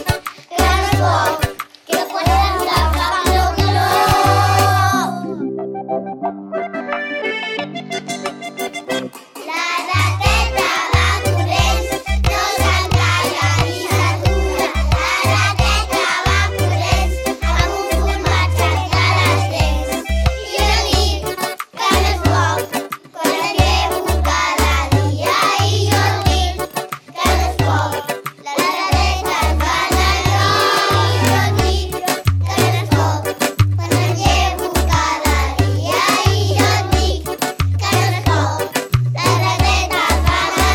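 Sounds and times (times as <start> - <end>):
music playing: 0.0 - 40.7.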